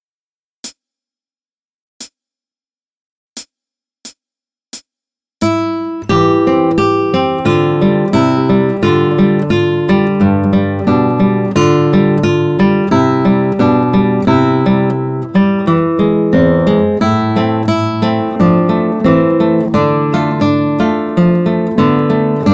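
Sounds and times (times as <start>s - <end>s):
traditional Spanish dance on guitar: 5.4s - 22.5s.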